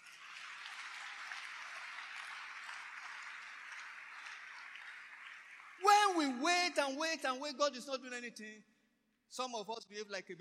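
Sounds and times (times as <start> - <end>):
audience clapping: 0.0 - 7.1
speech: 6.1 - 8.7, 9.3 - 10.3.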